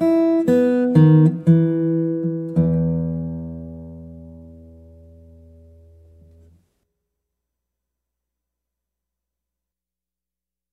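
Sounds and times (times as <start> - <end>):
guitar: 0.0 - 6.7.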